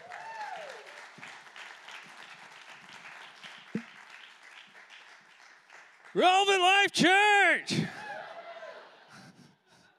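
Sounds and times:
crowd applauding: 0.0s - 6.7s
speech: 6.2s - 8.0s.

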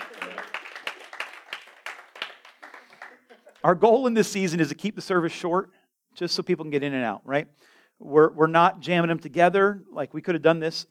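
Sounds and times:
audience applause: 0.0s - 3.7s
speech: 3.6s - 10.8s.

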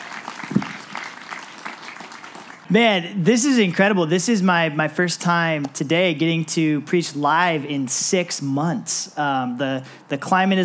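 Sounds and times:
audience applause: 0.0s - 2.7s
speech: 2.7s - 10.6s.

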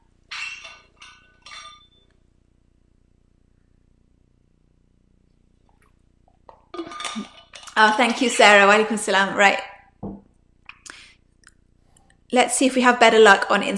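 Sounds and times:
glass clinks: 0.3s - 2.1s
speech: 7.2s - 9.7s, 12.3s - 13.7s.

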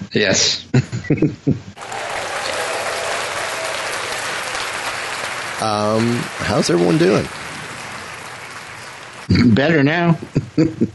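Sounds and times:
speech: 0.1s - 2.0s, 5.6s - 7.4s, 9.3s - 10.9s
laughter: 0.7s - 10.9s
audience applause: 1.8s - 9.9s.

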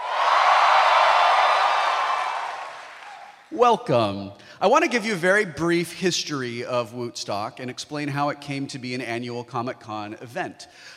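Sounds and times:
audience cheering and whooping at a Comic-Con event: 0.0s - 3.5s
speech: 3.6s - 10.9s.

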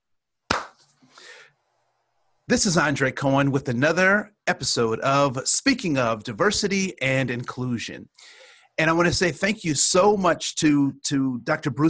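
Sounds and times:
hand clap: 0.5s - 0.9s
speech: 2.5s - 11.8s.

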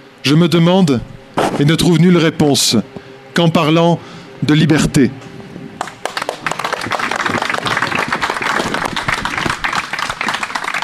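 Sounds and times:
speech: 0.2s - 5.2s
audience applause: 5.8s - 10.8s.

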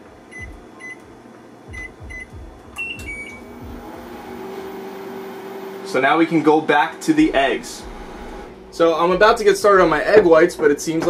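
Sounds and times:
soft rhythmic thumps: 0.0s - 4.7s, 7.2s - 11.0s
microwave oven running, cooking potatoes: 0.0s - 11.0s
microwave keypad beeps: 1.7s - 3.4s
speech: 5.9s - 7.9s, 8.8s - 11.0s.

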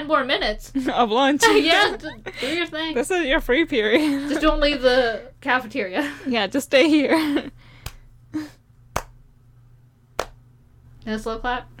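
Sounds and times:
speech: 0.1s - 7.6s, 11.1s - 11.7s
finger snapping: 9.0s - 9.2s.

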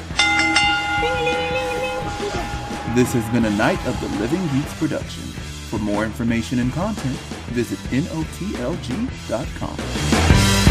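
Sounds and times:
bell ringing: 0.0s - 5.0s
speech: 2.9s - 10.5s.

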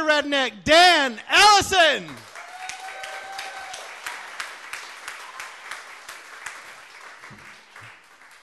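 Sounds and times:
speech: 0.2s - 2.3s
audience applause: 2.1s - 8.4s.

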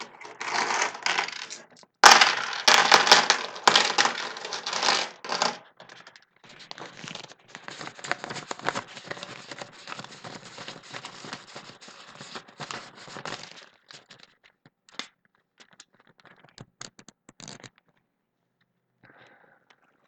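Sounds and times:
coins clinking: 0.0s - 5.6s.

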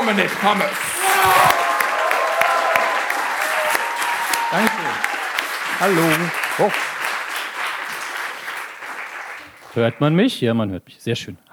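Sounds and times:
audience clapping: 0.0s - 10.4s
speech: 0.1s - 1.5s, 4.5s - 5.1s, 5.8s - 6.9s, 9.8s - 11.5s.

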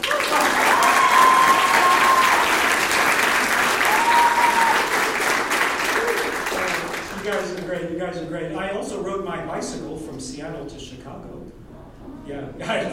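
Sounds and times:
crowd clapping: 0.0s - 7.8s
speech: 8.1s - 11.5s, 12.3s - 12.9s.

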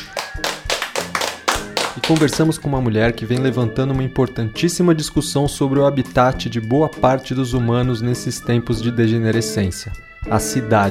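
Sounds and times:
clapping: 0.0s - 2.6s
speech: 2.1s - 10.9s.

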